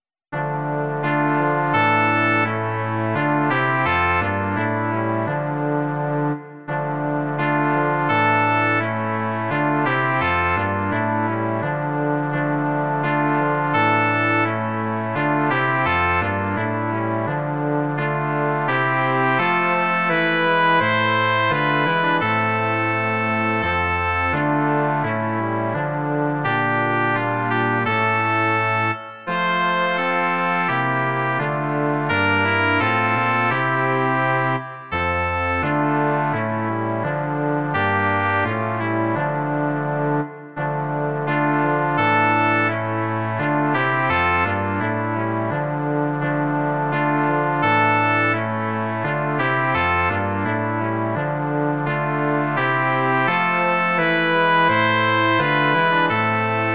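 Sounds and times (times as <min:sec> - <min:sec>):
brass quartet: 0:00.3 - 0:56.7.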